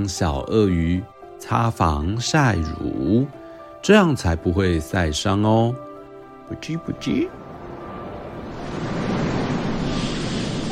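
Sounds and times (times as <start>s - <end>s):
speech: 0.0s - 5.9s, 6.5s - 7.4s
ocean waves: 6.1s - 10.7s.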